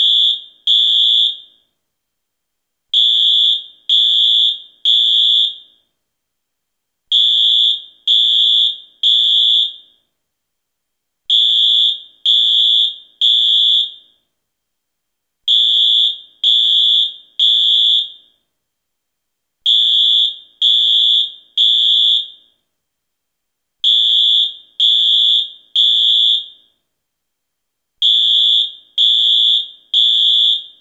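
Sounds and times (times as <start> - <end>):
fire alarm: 0.0 - 1.8, 3.0 - 6.0, 7.1 - 10.2, 11.3 - 14.3, 15.5 - 18.5, 19.6 - 22.7, 23.8 - 26.9, 28.0 - 30.7.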